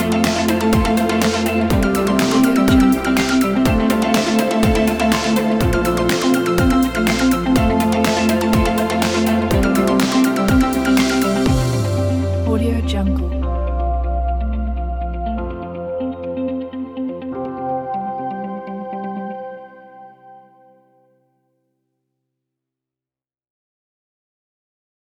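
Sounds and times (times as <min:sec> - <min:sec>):
inspiring motivational upbeat corporate music: 0:00.0 - 0:19.6.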